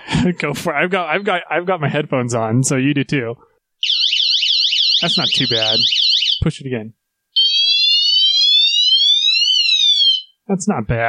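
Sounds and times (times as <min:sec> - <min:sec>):
speech: 0:00.2 - 0:04.0, 0:05.0 - 0:07.0, 0:10.5 - 0:11.0
piercing electronic alarm tone from a 160-decibel speaker: 0:03.8 - 0:06.4, 0:07.4 - 0:10.3.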